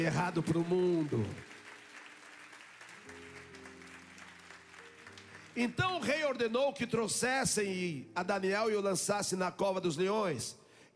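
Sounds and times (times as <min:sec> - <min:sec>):
speech: 0:00.0 - 0:01.5, 0:05.6 - 0:10.9
audience applauding: 0:00.0 - 0:06.3.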